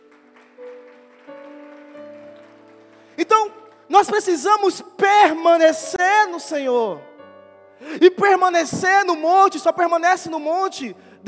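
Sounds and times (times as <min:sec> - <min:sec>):
audience applauding: 0:00.0 - 0:04.2
speech: 0:03.2 - 0:07.1, 0:07.8 - 0:11.1.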